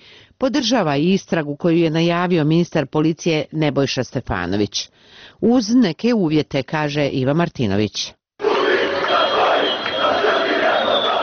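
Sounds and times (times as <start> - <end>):
speech: 0.4 - 8.2
football fans chanting after the Armenia–Albania match: 8.4 - 11.2.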